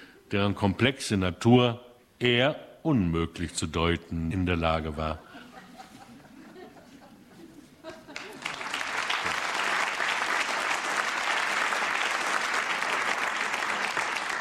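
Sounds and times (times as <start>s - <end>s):
speech: 0.3s - 5.3s
laughter: 5.2s - 8.8s
theater audience applause at the Münchner Volkstheater: 8.1s - 14.3s.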